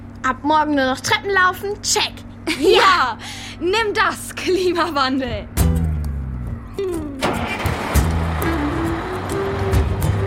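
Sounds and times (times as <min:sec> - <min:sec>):
speech: 0:00.2 - 0:05.8
bus engine at a bus stop: 0:06.8 - 0:10.2.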